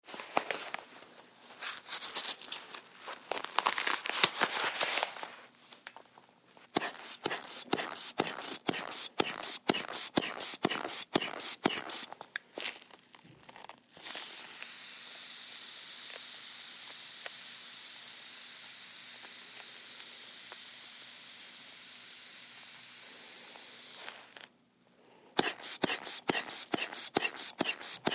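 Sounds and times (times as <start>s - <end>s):
blood pressure cuff ripped off arm: 1.6s - 5.2s, 6.8s - 14.7s, 25.4s - 28.1s
sphygmometer blood pressure cuff pump on arm: 6.7s - 12.3s, 14.0s - 17.6s, 25.4s - 28.1s
air releasing from blood pressure cuff: 6.8s - 12.2s, 25.4s - 28.1s.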